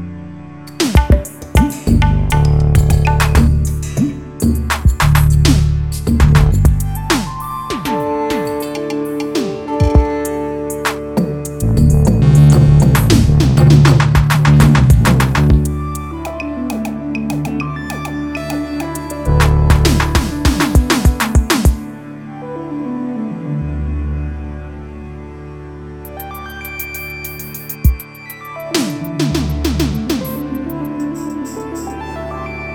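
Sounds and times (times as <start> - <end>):
drum machine: 0.7 - 10.3, 10.9 - 21.8, 26.2 - 31.6.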